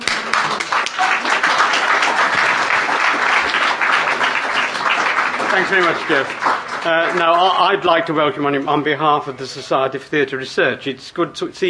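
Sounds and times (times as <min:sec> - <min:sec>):
audience applause: 0:00.0 - 0:08.1
speech: 0:05.6 - 0:11.6.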